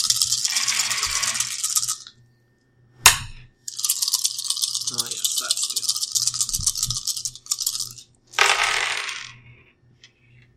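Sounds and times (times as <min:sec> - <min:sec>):
dice rattling: 0:00.0 - 0:02.1, 0:03.7 - 0:09.4.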